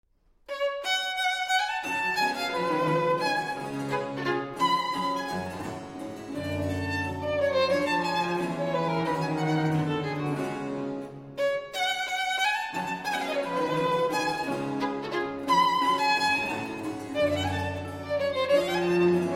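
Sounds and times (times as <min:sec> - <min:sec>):
violin sonata in G minor allegro: 0:00.5 - 0:19.3.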